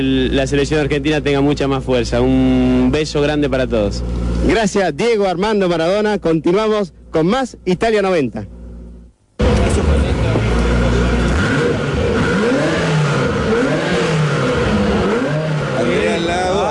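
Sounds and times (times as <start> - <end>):
speech: 0.0 - 8.6
Ferrari engine revving in neutral: 9.4 - 16.6.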